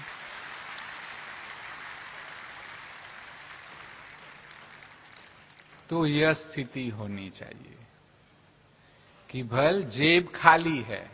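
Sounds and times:
audience clapping: 0:00.0 - 0:05.9
speech: 0:05.9 - 0:07.9, 0:09.3 - 0:11.1.

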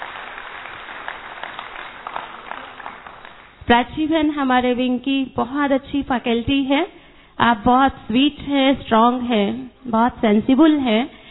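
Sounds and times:
applause: 0:00.0 - 0:03.6
speech: 0:03.7 - 0:11.2.

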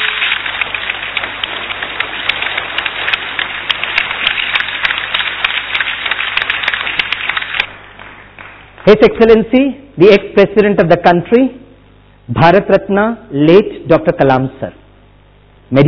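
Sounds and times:
audience applause: 0:00.0 - 0:09.4
speech: 0:08.9 - 0:11.6, 0:12.3 - 0:14.8.

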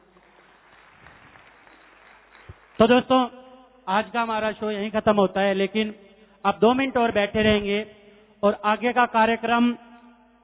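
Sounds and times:
audience applauding at a stage show: 0:00.0 - 0:03.0
speech: 0:02.8 - 0:09.8.

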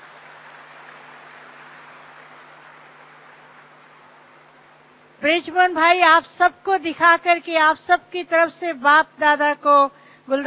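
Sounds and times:
crowd applauding: 0:00.0 - 0:04.2
speech: 0:05.2 - 0:10.4.

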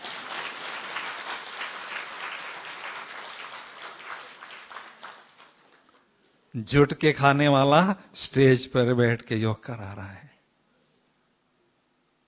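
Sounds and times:
audience applause: 0:00.0 - 0:05.9
speech: 0:06.5 - 0:10.3.

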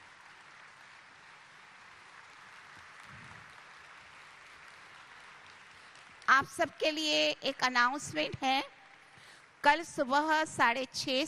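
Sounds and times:
audience applause: 0:00.0 - 0:06.3
speech: 0:06.3 - 0:08.8, 0:09.6 - 0:11.2.

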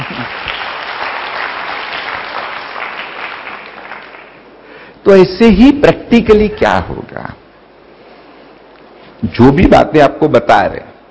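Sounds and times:
audience clapping: 0:00.0 - 0:04.6
speech: 0:05.0 - 0:07.4, 0:09.2 - 0:10.9.

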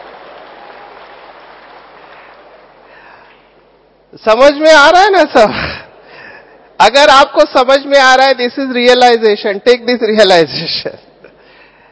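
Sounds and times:
audience clapping: 0:00.0 - 0:03.8
speech: 0:04.1 - 0:05.8, 0:06.8 - 0:11.1.

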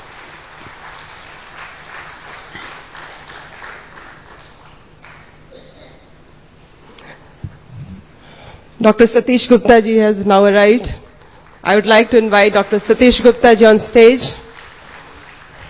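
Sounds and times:
audience applause: 0:00.0 - 0:05.4, 0:11.2 - 0:15.6
speech: 0:08.8 - 0:11.0, 0:11.7 - 0:14.4.

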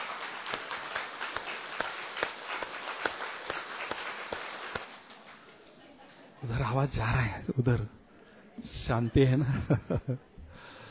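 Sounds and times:
group clapping hands: 0:00.0 - 0:05.5
speech: 0:06.4 - 0:08.0, 0:08.6 - 0:10.3
laughter: 0:09.2 - 0:10.4.

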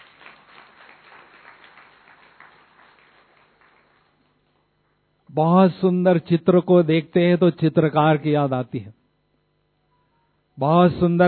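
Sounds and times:
crowd clapping: 0:00.0 - 0:05.0
speech: 0:05.3 - 0:09.0, 0:10.6 - 0:11.2.

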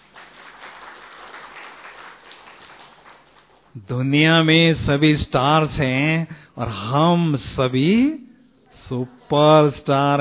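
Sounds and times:
crowd clapping: 0:00.0 - 0:03.8
speech: 0:03.7 - 0:08.2, 0:08.9 - 0:10.1.

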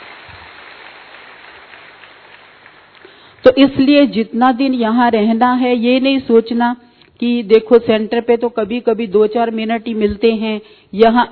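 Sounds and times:
audience clapping: 0:00.0 - 0:03.4
speech: 0:03.4 - 0:11.3.

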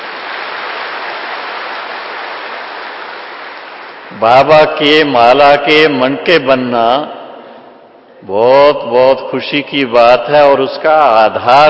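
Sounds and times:
audience applause: 0:00.0 - 0:04.1
speech: 0:04.2 - 0:07.2, 0:08.2 - 0:11.6.

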